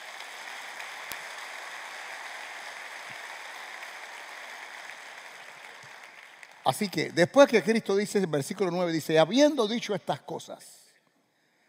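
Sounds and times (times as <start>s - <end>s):
audience applause: 0.0s - 7.5s
speech: 6.7s - 10.8s.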